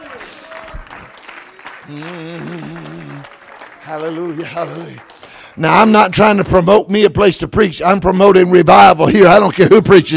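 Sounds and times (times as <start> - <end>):
crowd clapping hands: 0.0 - 6.5
speech: 1.9 - 3.3, 3.9 - 10.1.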